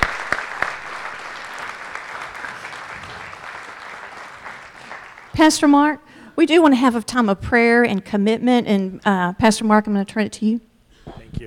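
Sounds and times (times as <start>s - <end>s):
audience applause: 0.0s - 5.4s
speech: 5.4s - 10.7s.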